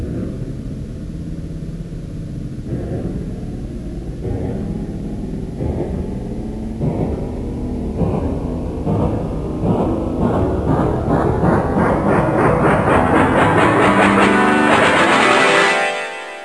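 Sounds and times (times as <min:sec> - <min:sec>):
stomping: 0:02.6 - 0:15.4.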